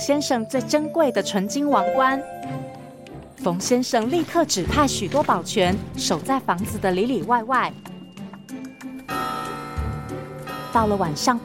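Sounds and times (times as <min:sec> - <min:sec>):
speech: 0:00.0 - 0:02.8, 0:03.4 - 0:07.9, 0:10.8 - 0:11.4
clock chime striking: 0:09.1 - 0:11.4.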